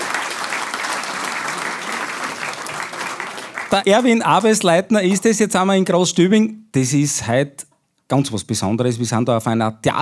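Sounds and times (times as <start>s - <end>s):
audience applause: 0.0s - 4.7s
speech: 3.7s - 10.0s.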